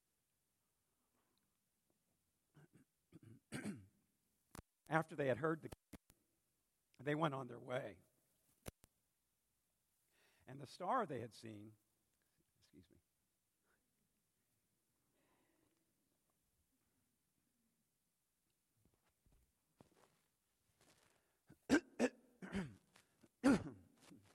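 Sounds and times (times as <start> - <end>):
preacher clearing his throat: 2.6 - 4.0, 21.6 - 24.0
speech: 4.9 - 5.8, 7.0 - 8.1, 10.5 - 11.8, 12.7 - 13.0, 22.0 - 22.8, 23.4 - 23.8.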